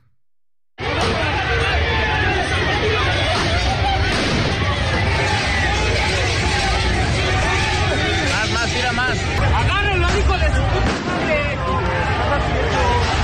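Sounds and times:
fans shouting outside stadium: 0.8 - 13.2
sharp bangs: 3.2 - 9.4, 10.0 - 11.6.

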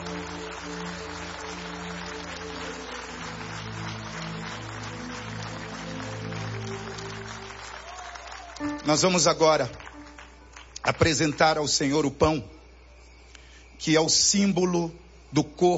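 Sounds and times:
audience applauding: 0.0 - 11.6
speech: 8.9 - 9.8, 10.9 - 12.6, 13.8 - 15.7.

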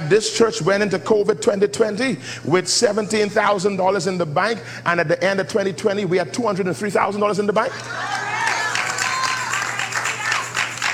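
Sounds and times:
speech: 0.1 - 8.2
audience clapping: 7.7 - 10.9.

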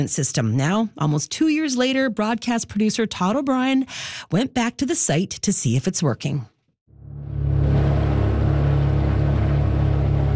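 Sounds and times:
speech: 0.0 - 6.5
18-foot speedboat engine heading out of Fox Trap Harbor: 7.0 - 10.3.

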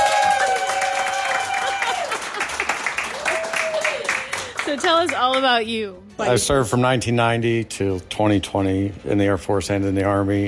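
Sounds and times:
audience cheering: 0.0 - 4.6
audience applause: 0.0 - 5.4
speech: 4.7 - 10.4.

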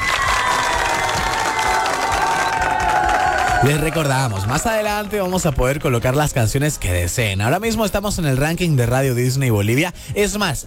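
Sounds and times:
audience applause: 0.0 - 6.6
speech: 3.6 - 10.6.

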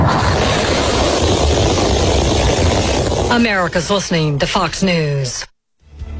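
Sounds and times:
SpaceX Starship rocket launching on test flight: 0.0 - 3.5
speech: 3.3 - 5.5.

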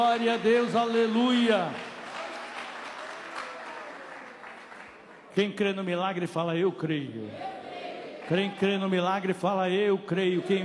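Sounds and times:
speech: 0.0 - 1.9, 5.4 - 7.6, 8.3 - 10.6
audience applauding: 0.0 - 5.3.

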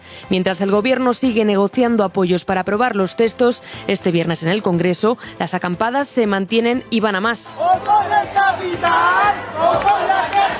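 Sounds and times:
speech: 0.3 - 10.5
large protest crowd chanting: 7.6 - 10.5.

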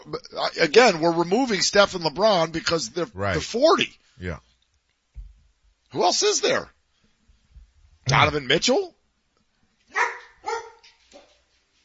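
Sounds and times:
speech: 0.0 - 4.5, 5.9 - 6.8, 8.1 - 9.0
female dog barking: 9.9 - 11.4.

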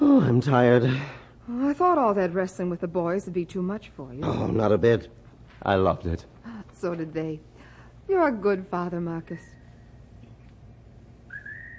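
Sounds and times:
speech: 0.2 - 7.5, 8.1 - 9.6
lonesome bird call: 11.3 - 11.7.

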